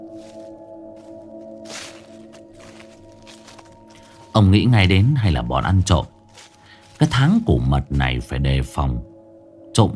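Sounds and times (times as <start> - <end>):
footsteps crunching on dry leaves in a garden: 0.0 - 7.7
speech: 4.4 - 6.2, 7.0 - 9.1, 9.8 - 9.9.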